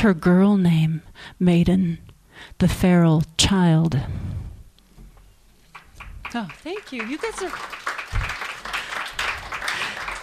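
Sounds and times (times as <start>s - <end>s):
speech: 0.0s - 4.4s, 6.3s - 8.3s
audience clapping at a live book reading: 5.7s - 10.2s.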